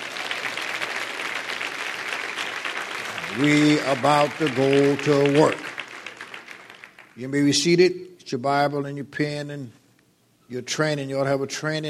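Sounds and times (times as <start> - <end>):
studio audience applause during a Bible training session: 0.0 - 7.5
speech: 3.3 - 5.7, 7.2 - 9.8, 10.5 - 11.8.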